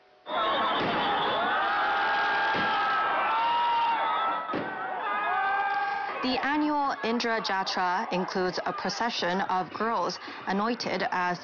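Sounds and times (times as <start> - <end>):
festival crowd roaring and cheering in city square: 0.0 - 11.4
sharp bangs: 0.7 - 1.5, 2.4 - 3.0, 4.5 - 4.9
speech: 6.8 - 11.4.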